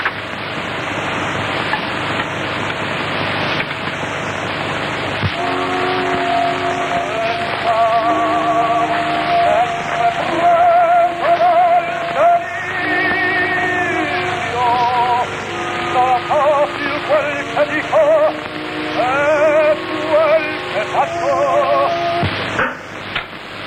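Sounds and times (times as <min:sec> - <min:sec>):
early 1905 gramophone record hiss and crackle: 0:00.0 - 0:23.6
thin accompaniment: 0:05.3 - 0:22.6
tenor singing opera with wide vibrato: 0:05.4 - 0:22.6.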